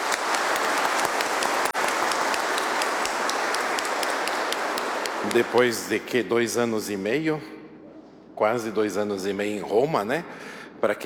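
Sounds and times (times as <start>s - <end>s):
applause: 0.0s - 6.0s
speech: 5.3s - 7.6s, 8.4s - 11.0s.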